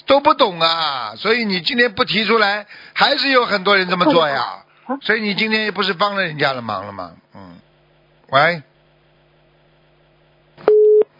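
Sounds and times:
speech: 0.1s - 7.5s, 8.3s - 8.7s
telephone busy tone after dropped call: 10.7s - 11.1s.

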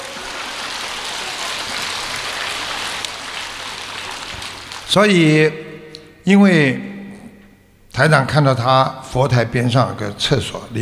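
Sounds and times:
audience applause: 0.0s - 5.0s
speech: 4.9s - 5.6s, 6.3s - 6.9s, 8.0s - 10.8s.

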